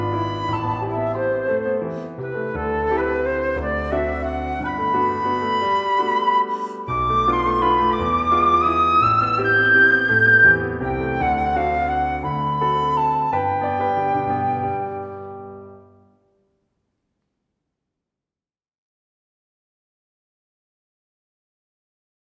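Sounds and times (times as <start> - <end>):
waltz music: 0.0 - 16.0.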